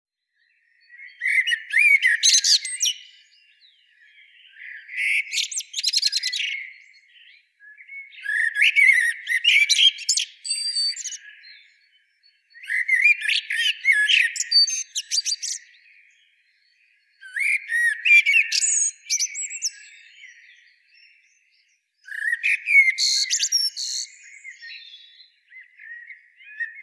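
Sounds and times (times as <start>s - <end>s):
Eurasian blackbird singing: 0.4s - 26.8s.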